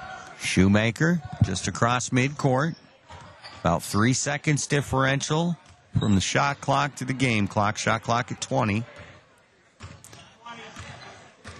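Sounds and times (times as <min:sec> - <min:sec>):
speech: 0:00.4 - 0:02.8, 0:03.6 - 0:09.1
basketball dribbled on the court during a college game: 0:01.2 - 0:01.6, 0:09.8 - 0:11.5.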